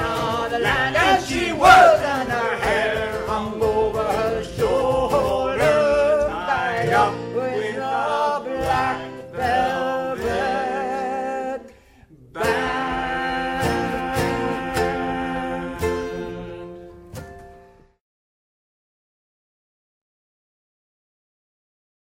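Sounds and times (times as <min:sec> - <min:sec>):
Irish band playing: 0:00.0 - 0:17.5.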